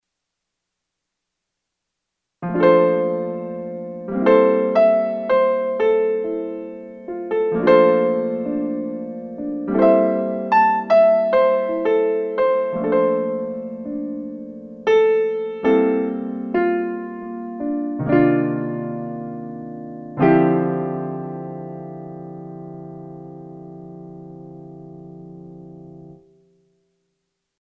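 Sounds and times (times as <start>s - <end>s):
interlude in G minor: 2.5s - 26.2s.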